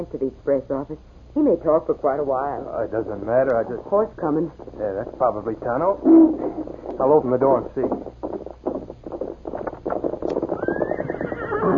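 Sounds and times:
speech: 0.0 - 8.4
hooves clip-clopping: 3.3 - 11.7
horse whinnying: 10.3 - 11.7.

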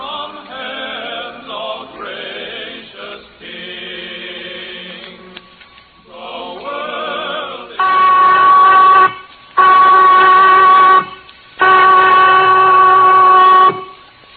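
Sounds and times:
prison whistle blasts: 7.8 - 14.1.

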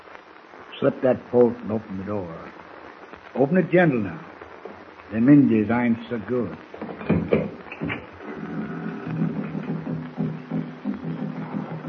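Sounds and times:
speech: 0.8 - 2.6, 3.4 - 4.3, 5.1 - 7.2
distant tom-tom drums: 6.6 - 11.8.

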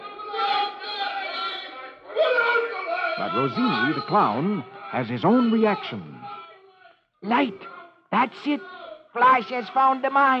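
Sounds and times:
crowd of captives screaming: 0.0 - 6.7
speech: 3.2 - 6.3, 7.2 - 10.3.

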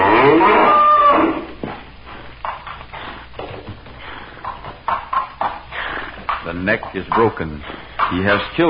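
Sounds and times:
bull deer bellowing: 0.0 - 1.5
bull deer bodies and antlers knocking and clattering: 2.4 - 8.6
speech: 6.8 - 8.6.

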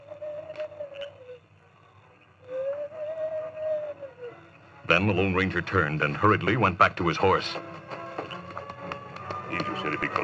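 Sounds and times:
person imitating owl hoots as a signal: 0.0 - 5.0
speech: 4.9 - 7.9, 9.8 - 10.2.

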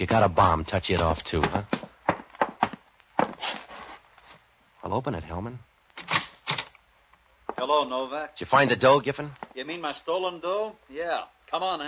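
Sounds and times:
speech: 0.0 - 1.8, 4.8 - 5.7, 7.6 - 11.8
soft shuffle: 0.0 - 4.5
footsteps creeping up stairs, radio drama sound effect: 0.1 - 3.4.

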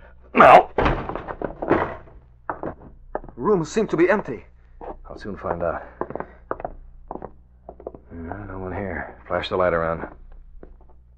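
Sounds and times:
speech: 0.4 - 0.7, 3.4 - 4.5, 5.2 - 6.0, 9.4 - 10.2
door being kicked open: 0.4 - 3.4.

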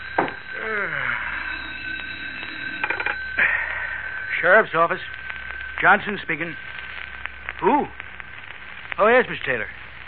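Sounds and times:
telephone ringing on a desk: 0.0 - 6.8
speech: 4.4 - 5.2, 5.8 - 6.7, 7.6 - 8.0, 9.0 - 9.8.

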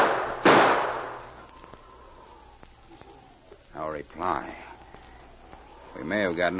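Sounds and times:
gunshot in a radio drama: 0.0 - 1.2
speech: 4.0 - 4.7, 6.0 - 6.5.

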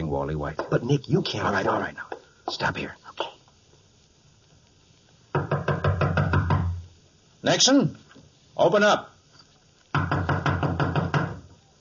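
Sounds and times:
speech: 0.2 - 3.3, 7.4 - 8.0, 8.6 - 9.1
knocking on a door: 5.3 - 6.8, 9.9 - 11.5.

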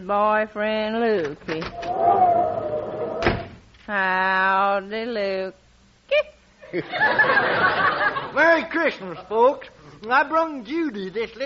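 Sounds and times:
speech: 0.0 - 2.9, 3.9 - 11.4
door creaking open: 1.6 - 3.6
door slamming shut: 3.1 - 3.6
laughter: 6.7 - 8.4.

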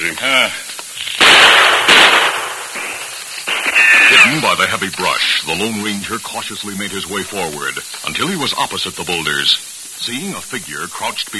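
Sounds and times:
speech: 0.2 - 0.7, 4.3 - 11.3
gunshots fired in a radio drama: 0.9 - 4.8.

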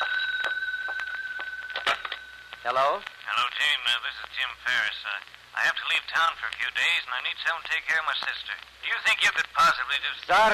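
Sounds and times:
telephone ringing inside a house with electronic bell tone: 0.0 - 3.3
speech: 2.6 - 10.5.

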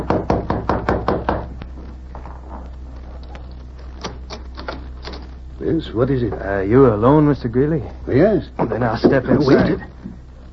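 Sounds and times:
knocking on a door: 0.0 - 1.5
low steady hum: 0.0 - 10.5
speech: 5.7 - 10.0.

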